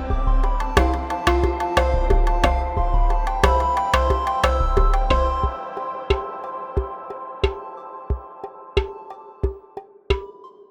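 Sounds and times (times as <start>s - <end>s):
dance music: 0.0s - 8.4s.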